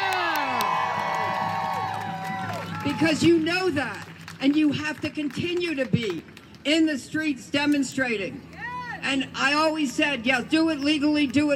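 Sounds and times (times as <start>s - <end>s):
large crowd cheering and whooping: 0.0s - 3.4s
scattered clapping: 0.0s - 6.7s
speech: 2.8s - 11.5s.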